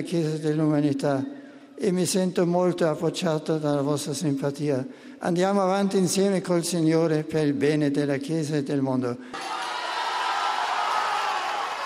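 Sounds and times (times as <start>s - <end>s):
speech: 0.0s - 9.7s
long applause from crowd: 9.3s - 11.8s.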